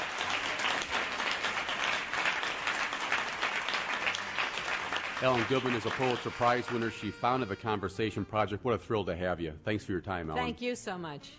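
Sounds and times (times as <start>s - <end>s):
round of applause: 0.0s - 8.1s
speech: 5.2s - 11.3s.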